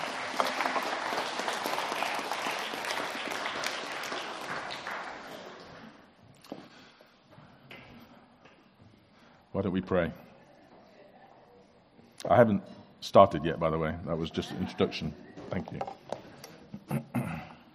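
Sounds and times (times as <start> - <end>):
round of applause from a crowd: 0.0 - 6.0
speech: 9.6 - 10.3, 12.3 - 16.0, 16.9 - 17.1.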